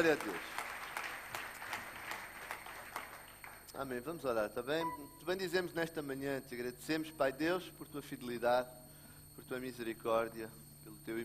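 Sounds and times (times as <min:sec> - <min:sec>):
speech: 0:00.0 - 0:00.6, 0:03.8 - 0:08.8, 0:09.4 - 0:11.2
church congregation applause welcoming guests: 0:00.0 - 0:03.7
low wash of noise: 0:00.0 - 0:11.2.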